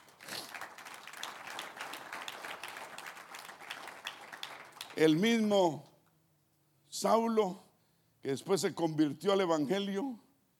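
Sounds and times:
crowd applause: 0.0 - 5.1
speech: 5.0 - 5.9, 7.0 - 7.6, 8.2 - 10.2.

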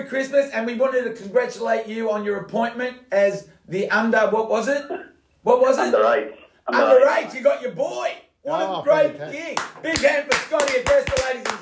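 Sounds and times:
speech: 0.0 - 11.6
people clapping for a football guest at a Christmas show: 9.4 - 11.6.

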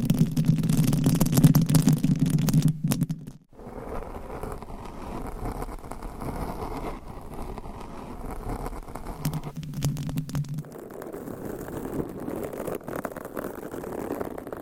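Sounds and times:
scratching and rubbing on a microphone cover: 0.0 - 14.6.

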